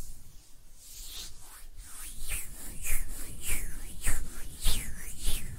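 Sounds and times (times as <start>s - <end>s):
hands rubbing and brushing against each other: 0.9s - 5.5s.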